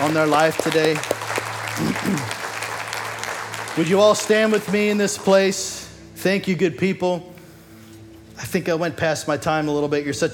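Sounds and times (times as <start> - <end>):
speech: 0.0 - 1.1, 1.8 - 2.4, 3.8 - 7.3, 8.4 - 10.3
audience applause: 0.0 - 5.4.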